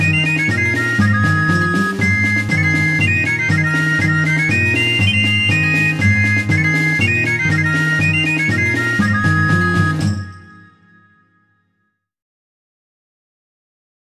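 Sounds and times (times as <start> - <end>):
farandole dance music: 0.0 - 11.2.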